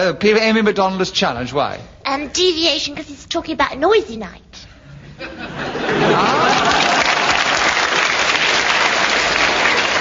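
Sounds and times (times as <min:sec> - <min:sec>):
speech: 0:00.0 - 0:06.8
laughter: 0:05.0 - 0:07.8
crowd applause: 0:05.7 - 0:09.9.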